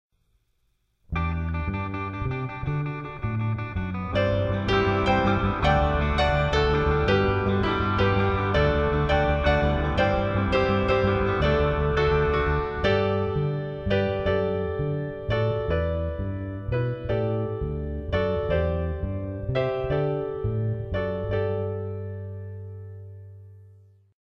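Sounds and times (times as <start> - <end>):
instrumental music: 1.0 - 24.1.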